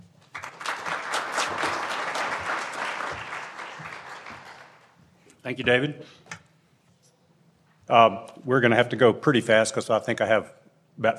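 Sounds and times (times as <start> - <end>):
seminar audience applause welcoming a speaker: 0.3 - 4.9
speech: 5.4 - 6.3, 7.9 - 11.1.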